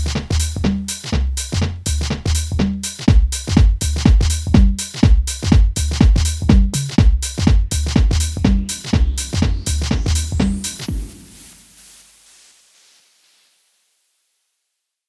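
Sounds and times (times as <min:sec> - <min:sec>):
house music kick drums: 0:00.0 - 0:11.7.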